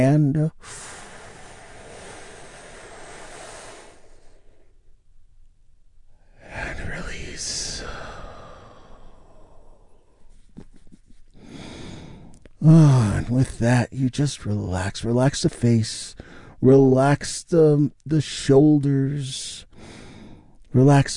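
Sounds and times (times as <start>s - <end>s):
speech: 0.0s - 0.9s, 12.6s - 19.9s, 20.7s - 21.1s
steady soft hiss: 0.0s - 19.8s
big deep breath drawn in and slowly let out: 0.5s - 5.0s, 6.1s - 10.3s, 11.4s - 13.1s, 16.1s - 16.6s, 19.6s - 20.6s.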